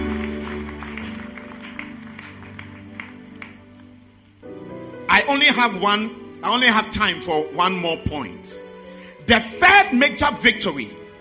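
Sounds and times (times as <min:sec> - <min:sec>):
audience clapping hands: 0:00.0 - 0:04.4
speech: 0:05.2 - 0:08.7, 0:09.3 - 0:11.0.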